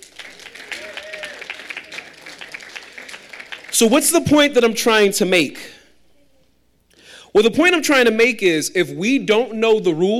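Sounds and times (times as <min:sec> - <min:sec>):
audience applauding for volunteers: 0:00.0 - 0:04.1
whistle or cheer: 0:00.4 - 0:02.1
speech: 0:03.8 - 0:05.8, 0:07.4 - 0:10.1.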